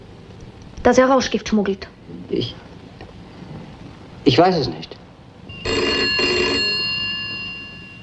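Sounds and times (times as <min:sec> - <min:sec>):
speech: 0:00.9 - 0:02.7, 0:04.2 - 0:04.9
telephone bell ringing with bright metallic tone: 0:05.5 - 0:08.0.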